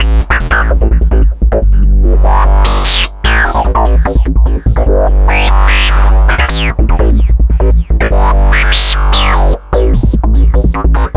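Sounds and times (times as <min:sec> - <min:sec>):
synth bass: 0:00.0 - 0:11.1.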